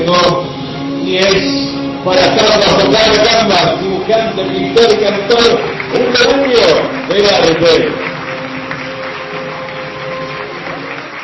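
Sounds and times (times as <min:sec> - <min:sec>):
speech: 0:00.1 - 0:08.0
audience applause: 0:04.8 - 0:11.2.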